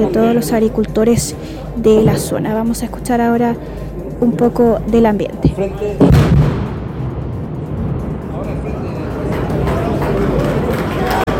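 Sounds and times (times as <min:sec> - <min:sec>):
speech: 0:00.0 - 0:06.5
rock blasting detonation: 0:06.0 - 0:08.6
crowd applause: 0:08.3 - 0:11.3.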